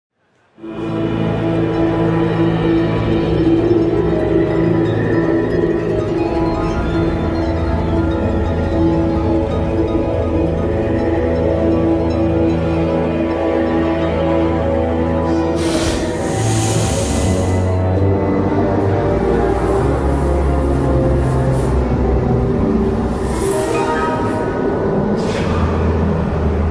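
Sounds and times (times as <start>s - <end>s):
music: 0.1s - 26.6s.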